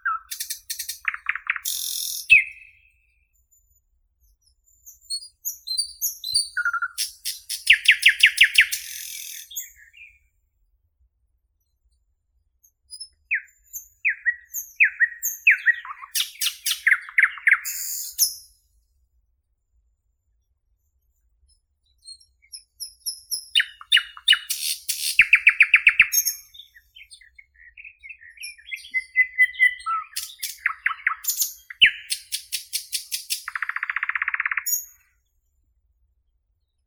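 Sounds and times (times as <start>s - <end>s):
common nightingale Luscinia luscinia singing: 0.0s - 3.0s, 5.0s - 10.2s, 12.9s - 18.5s, 22.2s - 35.1s.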